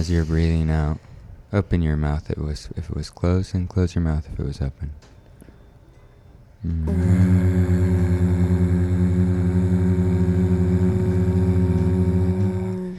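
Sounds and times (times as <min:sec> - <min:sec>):
speech: 0:00.0 - 0:05.1, 0:06.6 - 0:08.5
person humming: 0:06.6 - 0:12.9.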